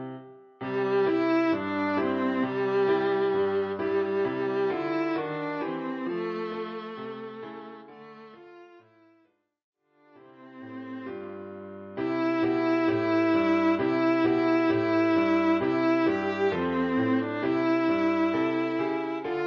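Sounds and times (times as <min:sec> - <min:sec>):
viola: 0:00.6 - 0:09.0, 0:10.3 - 0:19.4.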